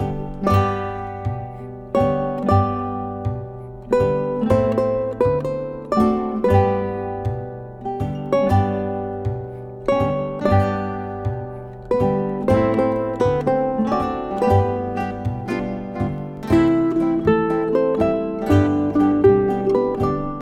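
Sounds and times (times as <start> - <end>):
ukulele trio playing: 0.0 - 20.4.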